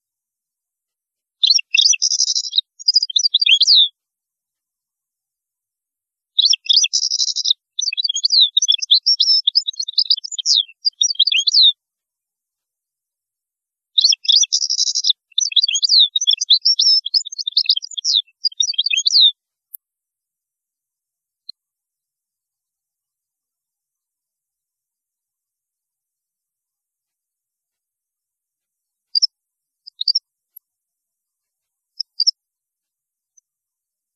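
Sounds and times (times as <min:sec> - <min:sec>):
European goldfinch song: 0:01.4 - 0:03.9, 0:06.4 - 0:11.8, 0:14.0 - 0:19.4, 0:29.9 - 0:30.2, 0:32.0 - 0:32.3.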